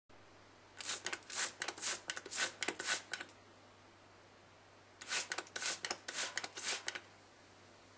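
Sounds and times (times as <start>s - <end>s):
spray bottle spraying: 0.8s - 3.3s, 5.0s - 7.0s.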